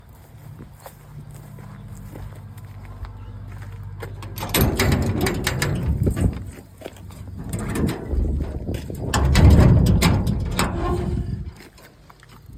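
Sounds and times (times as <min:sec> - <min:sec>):
exit gate: 0:04.0 - 0:11.8.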